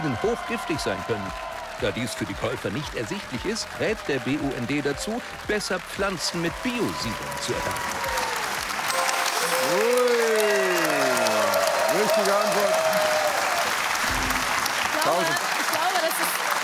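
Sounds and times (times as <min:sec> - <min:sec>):
speech: 0:00.0 - 0:08.2, 0:12.1 - 0:13.2
loud audience applause: 0:00.0 - 0:16.6.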